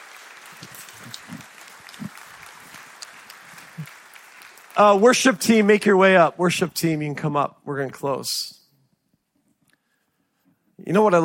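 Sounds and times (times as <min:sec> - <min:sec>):
audience clapping: 0:00.0 - 0:06.2
speech: 0:04.8 - 0:08.6, 0:10.9 - 0:11.2.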